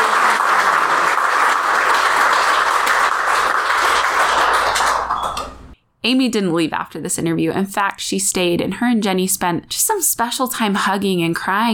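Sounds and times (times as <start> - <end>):
crowd applause: 0.0 - 5.6
speech: 6.0 - 11.7.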